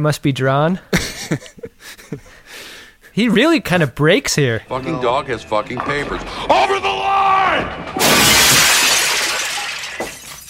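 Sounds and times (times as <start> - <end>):
speech: 0.0 - 6.9
model ships smashed, glass shattering: 5.7 - 10.4.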